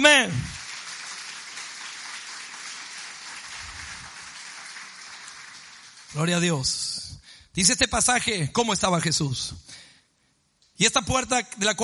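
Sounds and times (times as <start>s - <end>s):
crowd applauding: 0.0s - 6.5s
speech: 6.1s - 9.9s, 10.8s - 11.8s.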